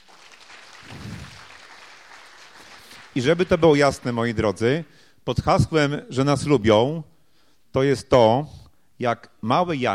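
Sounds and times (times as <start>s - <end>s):
crowd clapping for the children: 0.0s - 4.4s
speech: 3.2s - 7.1s, 7.7s - 9.9s.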